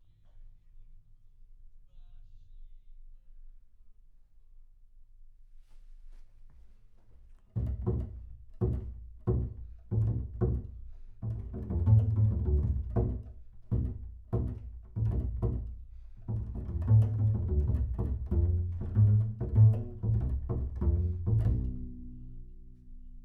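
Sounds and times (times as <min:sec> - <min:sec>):
bass sound: 0:07.6 - 0:23.2.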